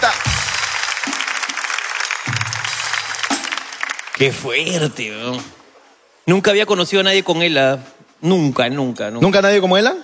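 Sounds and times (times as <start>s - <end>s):
audience applauding: 0.0s - 5.1s
speech: 4.2s - 5.6s, 6.3s - 10.0s.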